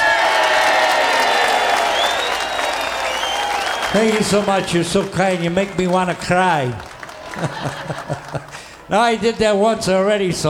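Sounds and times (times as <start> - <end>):
rising whoop or whistle: 0.0 - 4.4
high cheers: 0.0 - 8.6
crowd applause: 0.0 - 8.9
speech: 3.9 - 10.4
laughter: 7.0 - 8.9.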